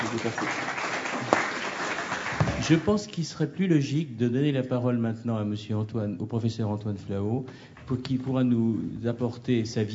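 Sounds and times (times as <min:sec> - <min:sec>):
audience applause for a speaker after a presentation: 0:00.0 - 0:02.9
speech: 0:00.2 - 0:00.8, 0:02.6 - 0:09.9.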